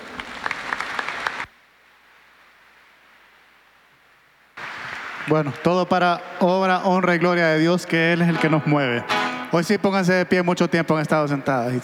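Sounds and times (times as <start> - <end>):
audience applause: 0.0 - 1.5, 4.6 - 9.8
speech: 5.3 - 11.8.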